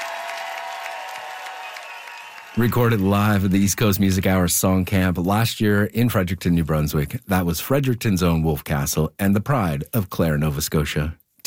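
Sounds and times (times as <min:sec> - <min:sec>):
live audience applause: 0:00.0 - 0:03.6
speech: 0:02.6 - 0:11.4.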